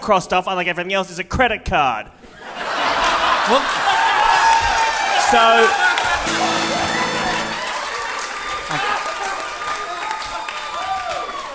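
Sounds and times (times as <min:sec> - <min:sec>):
speech: 0:00.0 - 0:02.6, 0:03.4 - 0:04.0, 0:05.3 - 0:06.7, 0:08.7 - 0:09.0
laughter: 0:02.3 - 0:04.5
audience applause: 0:03.0 - 0:11.5.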